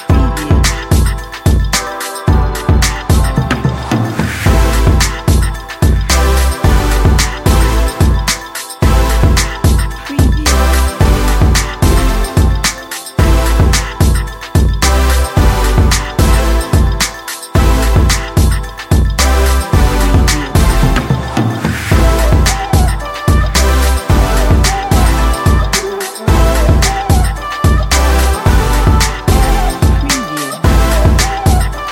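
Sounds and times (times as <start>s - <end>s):
future bass music: 0.0s - 31.8s.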